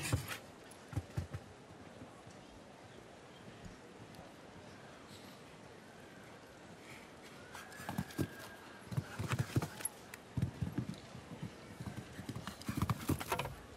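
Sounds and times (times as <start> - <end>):
horse hooves clip-clopping: 0.0 - 1.7, 7.6 - 13.7.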